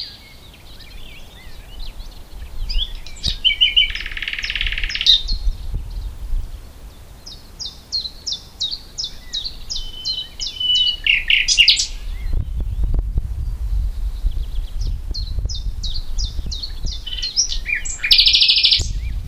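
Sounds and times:
common nightingale song: 0.0 - 19.2
low rumbling noise: 0.7 - 7.6, 11.5 - 17.9, 18.8 - 19.2.

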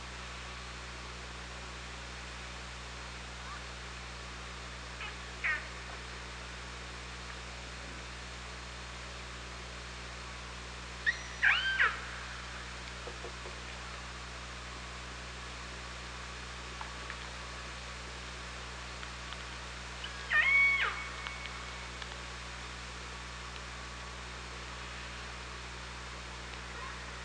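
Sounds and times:
hydrophone hiss: 0.0 - 27.2
low hum: 0.0 - 27.2
orca calls underwater: 5.0 - 5.7, 11.1 - 12.1, 20.0 - 21.7.

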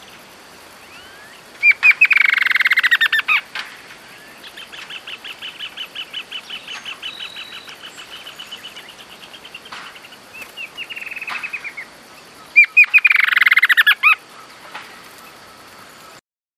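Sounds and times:
steady background hiss: 0.0 - 16.2
bird trilling: 0.8 - 3.5, 4.1 - 14.3.

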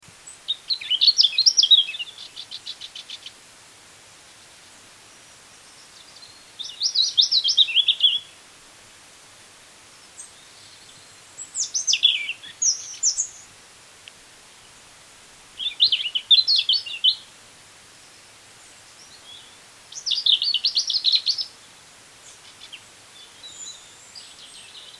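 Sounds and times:
European robin singing: 0.2 - 3.4, 5.5 - 8.4, 10.0 - 13.6, 15.6 - 17.3, 18.1 - 24.9.

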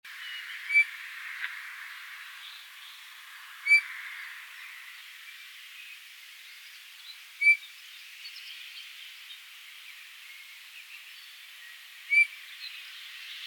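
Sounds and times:
Pyrrhula pyrrhula calling: 0.6 - 0.9, 3.6 - 3.9, 7.4 - 7.6, 12.1 - 12.3.

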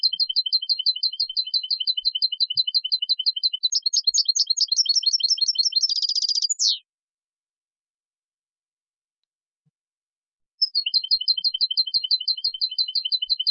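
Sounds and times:
European goldfinch Carduelis carduelis singing with twittering bursts and trills: 0.0 - 6.8, 10.6 - 13.4.

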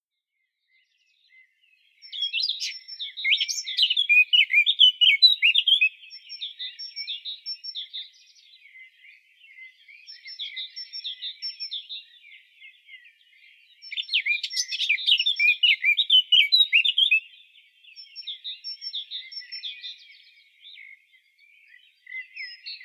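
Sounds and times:
Eurasian blackcap singing: 2.0 - 22.8.

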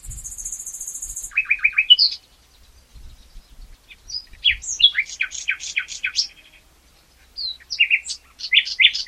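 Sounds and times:
common nightingale Luscinia megarhynchos song: 0.0 - 9.0.

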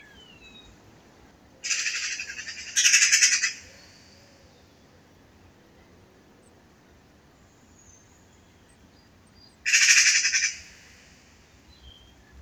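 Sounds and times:
Eurasian magpie Pica pica giving harsh rattling chatter calls: 1.7 - 3.7, 9.7 - 10.7.

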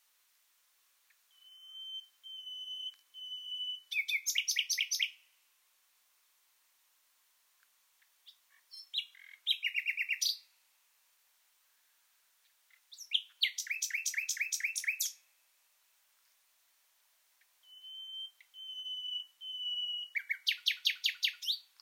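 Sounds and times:
common nightingale singing: 1.0 - 5.3, 8.0 - 10.6, 12.4 - 15.3, 17.3 - 21.8.

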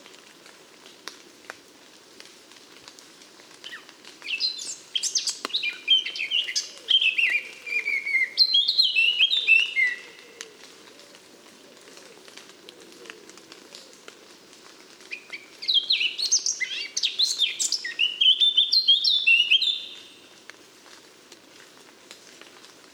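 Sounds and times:
Eurasian blackcap song: 4.2 - 10.0, 15.6 - 20.0.

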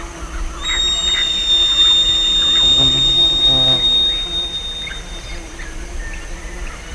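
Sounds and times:
bird squawky calls: 0.6 - 5.3
low steady hum: 1.0 - 5.6.

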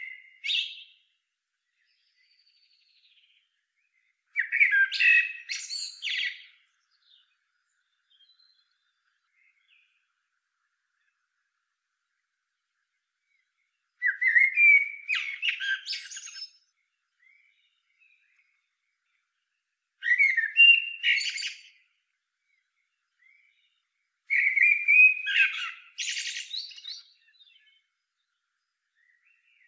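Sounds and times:
Eurasian blackbird singing: 0.0 - 1.0, 1.8 - 10.0, 13.3 - 19.2, 20.0 - 21.9, 22.6 - 29.6.

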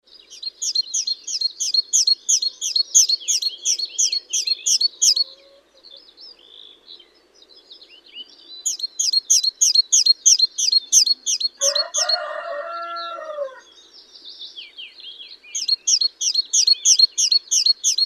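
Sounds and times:
great tit singing two-note phrases: 0.1 - 5.3, 5.9 - 12.3, 13.8 - 18.0
rooster crowing: 11.6 - 13.7.

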